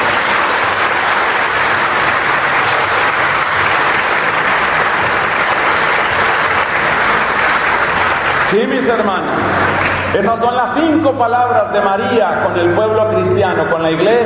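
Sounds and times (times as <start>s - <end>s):
audience clapping: 0.0s - 10.5s
speech: 8.5s - 14.2s.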